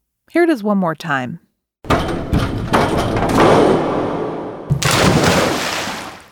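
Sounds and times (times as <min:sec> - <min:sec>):
speech: 0:00.3 - 0:01.4
diver bouncing on a diving board: 0:01.9 - 0:06.3
diver splashing into pool water: 0:04.7 - 0:06.3.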